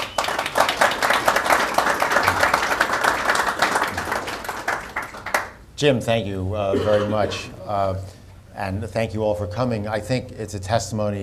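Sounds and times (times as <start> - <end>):
audience applause welcoming panelists: 0.0 - 5.5
speech: 5.8 - 11.2.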